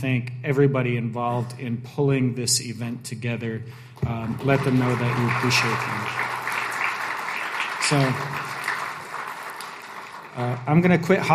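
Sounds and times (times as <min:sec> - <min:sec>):
speech: 0:00.0 - 0:06.2, 0:07.9 - 0:08.5, 0:10.4 - 0:11.3
audience applause: 0:04.0 - 0:11.3.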